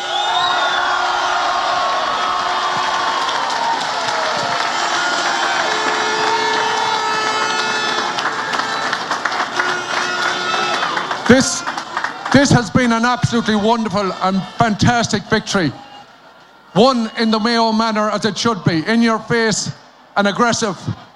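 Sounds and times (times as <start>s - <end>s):
dense applause: 0.0s - 14.6s
large crowd cheering: 0.0s - 21.1s
speech: 11.3s - 11.6s, 12.3s - 15.8s, 16.7s - 21.0s.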